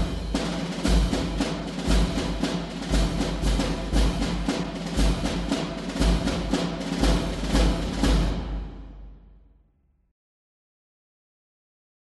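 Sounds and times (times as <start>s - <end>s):
two-four military drum cadence for troop formation ceremony: 0.0s - 9.3s.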